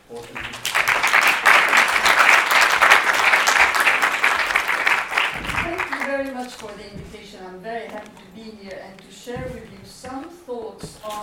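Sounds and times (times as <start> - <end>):
warm audience applause welcoming a speaker: 0.0 - 6.4
speech: 0.1 - 0.4, 8.4 - 10.4.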